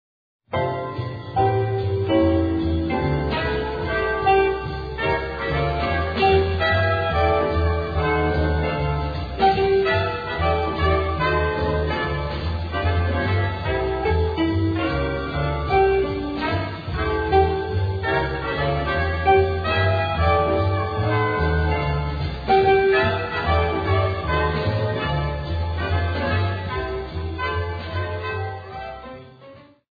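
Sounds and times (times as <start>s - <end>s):
country club swing music: 0.5s - 29.9s.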